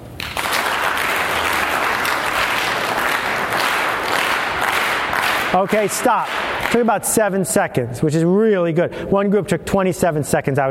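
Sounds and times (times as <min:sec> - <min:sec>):
audience clapping in unison: 0:00.0 - 0:07.3
speech: 0:05.5 - 0:10.6.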